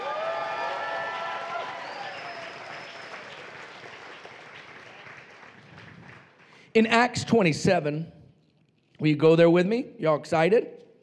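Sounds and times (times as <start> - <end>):
audience shouting and whooping: 0.0 - 3.3
audience clapping: 0.0 - 6.8
speech: 6.8 - 8.2, 9.0 - 10.8.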